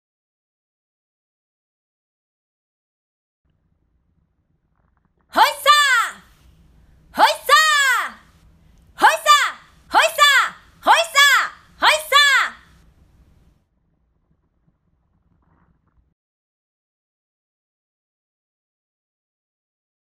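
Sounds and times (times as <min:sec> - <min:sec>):
voice calling hoisa: 0:05.4 - 0:06.3, 0:07.2 - 0:08.3, 0:09.0 - 0:12.7.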